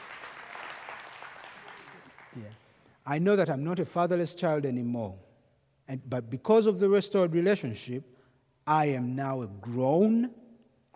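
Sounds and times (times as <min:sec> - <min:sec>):
audience clapping: 0:00.0 - 0:02.7
speech: 0:02.4 - 0:05.3, 0:05.9 - 0:10.4.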